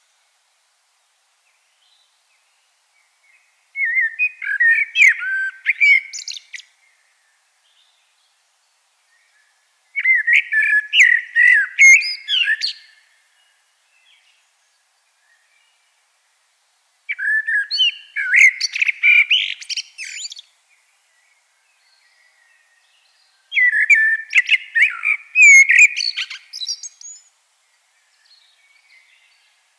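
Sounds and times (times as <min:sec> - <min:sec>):
common blackbird singing: 0:03.3 - 0:08.2, 0:09.1 - 0:14.5, 0:17.1 - 0:27.3, 0:27.9 - 0:29.6.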